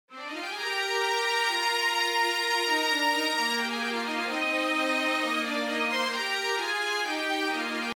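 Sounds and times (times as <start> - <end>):
strings: 0.1 - 7.9.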